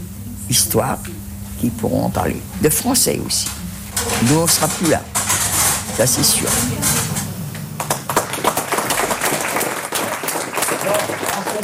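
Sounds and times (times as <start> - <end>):
speech: 0.5 - 5.4, 6.0 - 7.1
applause: 7.8 - 11.6.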